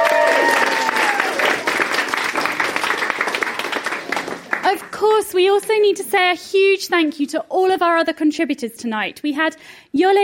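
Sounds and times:
audience applause: 0:00.0 - 0:05.0
speech: 0:05.2 - 0:10.2.

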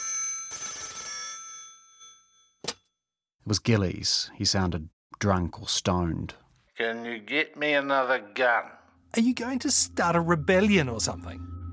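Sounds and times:
old telephone bell ringing: 0:00.0 - 0:02.6
speech: 0:03.4 - 0:11.6.

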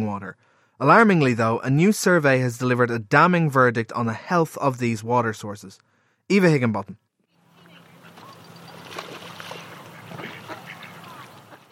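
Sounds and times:
speech: 0:00.0 - 0:07.0
swans: 0:07.4 - 0:11.6
excited ducks by the River Cam in Cambridge: 0:07.5 - 0:11.6.

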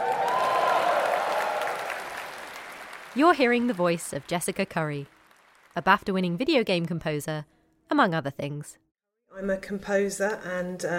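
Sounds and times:
whooping voices of large audience: 0:00.0 - 0:02.1
large audience applauding: 0:00.0 - 0:06.2
speech: 0:03.2 - 0:05.2, 0:05.8 - 0:10.9.

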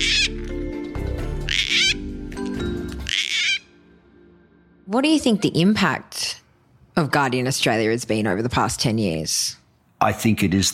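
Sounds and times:
gang-gang cockatoo rasping calls: 0:00.0 - 0:00.6, 0:01.3 - 0:02.1, 0:02.9 - 0:03.8
speech: 0:04.9 - 0:06.2, 0:07.0 - 0:10.7.

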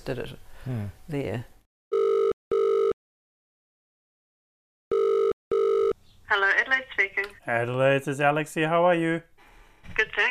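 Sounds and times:
speech: 0:00.0 - 0:01.6, 0:06.3 - 0:09.3, 0:09.9 - 0:10.2
telephone ringing tone heard down the line: 0:01.9 - 0:03.0, 0:04.9 - 0:06.0.

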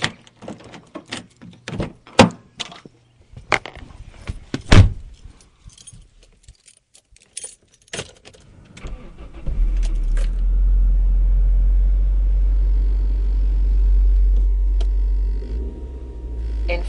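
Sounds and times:
keys jangling: 0:05.1 - 0:08.5
car engine starting and driving out of the city: 0:08.4 - 0:16.8.

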